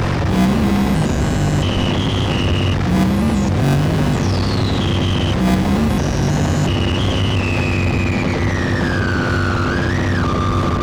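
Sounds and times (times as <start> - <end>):
synthesizer: 0.0 - 10.7.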